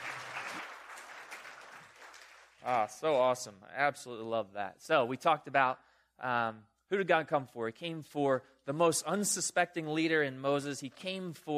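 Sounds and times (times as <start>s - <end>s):
crowd applause for a speaker at a church gathering: 0.0s - 2.8s
speech: 2.6s - 11.5s.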